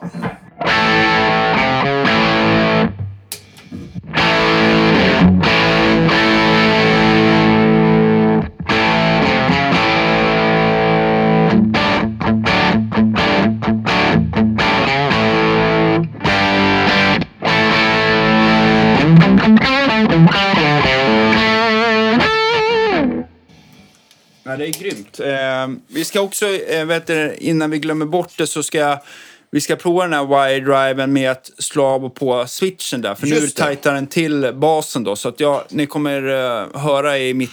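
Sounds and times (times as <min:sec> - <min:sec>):
heavily distorted electric guitar through a Marshall amplifier: 0:00.0 - 0:23.7
speech: 0:24.7 - 0:37.5.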